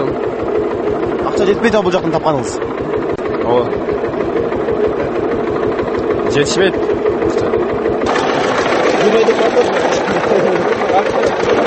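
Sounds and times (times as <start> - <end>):
Chinese-made tractor engine chugging: 0.0 - 11.6
speech: 1.4 - 5.2, 6.3 - 7.4, 9.0 - 11.6.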